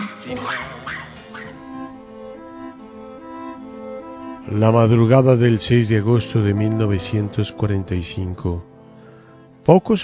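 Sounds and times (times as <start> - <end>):
speech: 0.2 - 1.7, 4.5 - 8.7, 9.6 - 10.0
dog barking and whimpering: 0.3 - 1.9.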